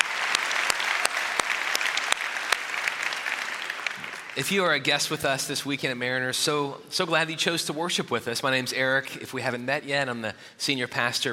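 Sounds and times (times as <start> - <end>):
audience applause at a Mariners Church service: 0.0 - 4.7
speech: 4.4 - 11.3.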